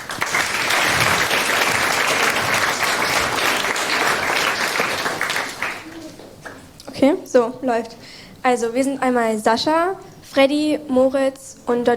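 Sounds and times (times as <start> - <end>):
audience applause: 0.0 - 6.6
speech: 7.0 - 11.9.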